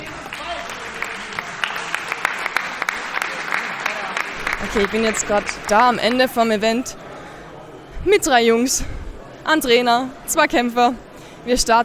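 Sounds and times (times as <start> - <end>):
audience applause: 0.0 - 6.4
speech: 4.7 - 7.0, 8.0 - 11.8.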